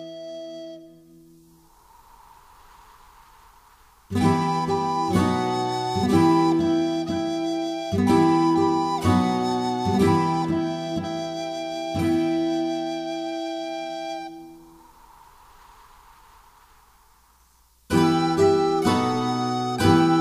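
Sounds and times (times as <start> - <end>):
instrumental music: 4.1 - 14.6, 17.9 - 20.2.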